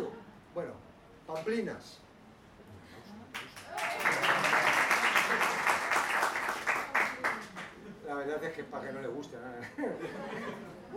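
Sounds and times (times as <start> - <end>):
speech: 1.4 - 2.0, 8.2 - 10.9
crowd applauding: 3.4 - 7.8
laughter: 9.7 - 10.9.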